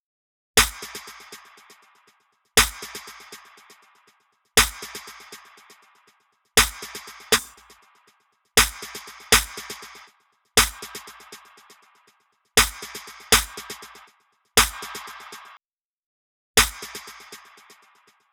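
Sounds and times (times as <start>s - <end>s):
snare drum: 0.6s - 1.7s, 2.6s - 3.5s, 4.6s - 5.5s, 6.6s - 7.8s, 8.6s - 11.5s, 12.6s - 15.6s, 16.6s - 18.0s.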